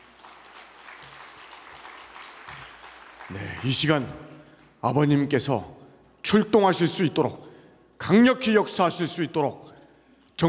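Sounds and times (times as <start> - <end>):
audience applause: 0.0 - 4.1
speech: 3.3 - 4.2, 4.8 - 7.4, 8.0 - 9.6.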